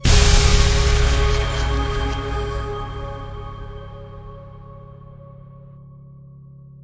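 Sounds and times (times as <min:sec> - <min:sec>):
free spin outro music: 0:00.0 - 0:05.3.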